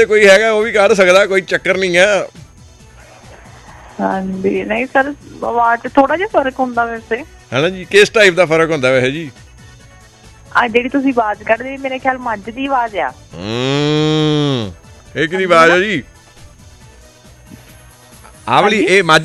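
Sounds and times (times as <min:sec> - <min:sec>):
speech: 0:00.0 - 0:02.4, 0:04.0 - 0:09.4, 0:10.5 - 0:16.1, 0:18.5 - 0:19.2
person imitating cattle mooing: 0:13.3 - 0:14.8.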